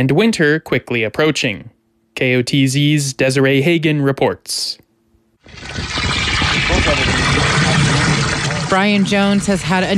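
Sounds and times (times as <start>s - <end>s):
speech: 0.0s - 4.8s, 5.5s - 7.6s, 8.7s - 9.9s
water filling a 5 gallon bucket: 5.4s - 9.9s.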